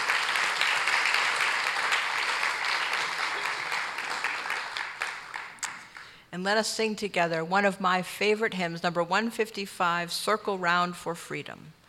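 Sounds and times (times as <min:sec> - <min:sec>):
congregation applauding during a church service: 0:00.0 - 0:06.2
speech: 0:06.4 - 0:11.8.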